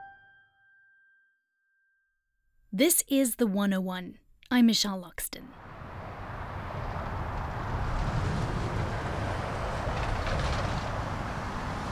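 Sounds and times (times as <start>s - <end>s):
speech: 2.8s - 5.6s
heavy highway traffic passing: 5.5s - 11.9s.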